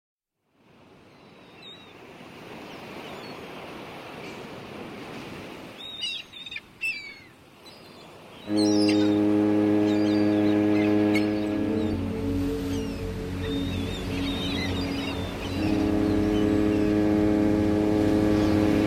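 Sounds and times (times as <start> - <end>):
whale calls: 8.4 - 18.8.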